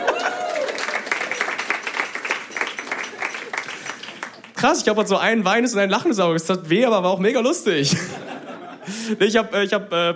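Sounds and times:
laughter: 0.0s - 0.8s, 7.8s - 9.3s
audience applause: 0.0s - 4.6s
speech: 4.6s - 8.2s, 9.1s - 10.1s.

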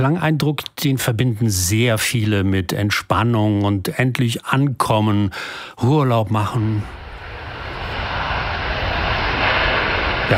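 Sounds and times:
speech: 0.0s - 7.0s
Airbus A350-1000 jet airliner landing: 6.4s - 10.3s.

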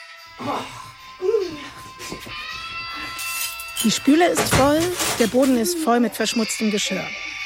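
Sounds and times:
speech: 0.3s - 7.4s
video game baby crying: 0.4s - 3.7s, 4.8s - 7.4s.

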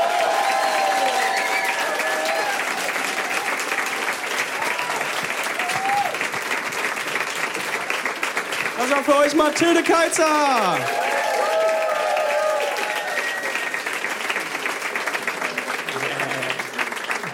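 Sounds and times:
whistles and cheers: 0.0s - 3.9s, 4.5s - 6.2s, 10.8s - 14.2s
audience applause: 0.0s - 17.3s
speech: 8.9s - 11.0s.

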